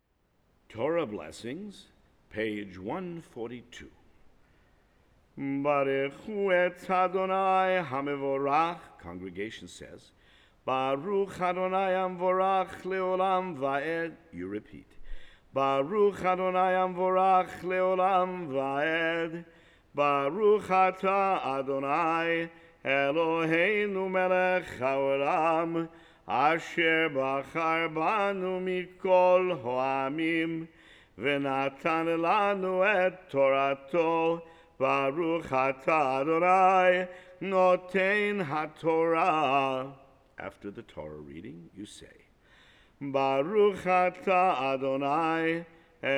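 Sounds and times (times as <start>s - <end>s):
Torah blessings recited: 5.3s - 46.1s.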